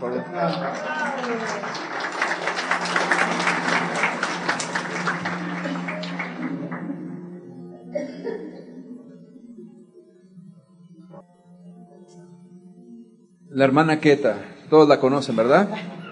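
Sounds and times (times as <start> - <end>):
speech: 0.0 - 2.6, 13.6 - 16.0
audience applause: 0.0 - 7.1
faint laughs: 7.8 - 8.9, 15.7 - 16.0.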